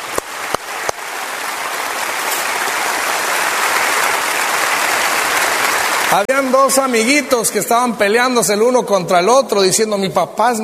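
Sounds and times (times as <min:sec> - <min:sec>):
audience applause: 0:00.0 - 0:07.6
speech: 0:06.1 - 0:10.6.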